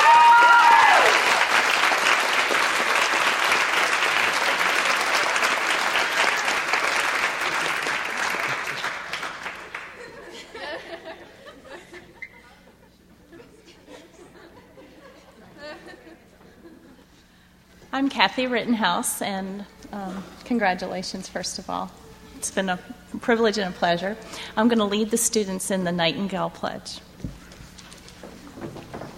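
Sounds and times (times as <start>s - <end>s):
round of applause: 0.0s - 10.2s
laughter: 7.4s - 17.2s
speech: 18.0s - 27.1s.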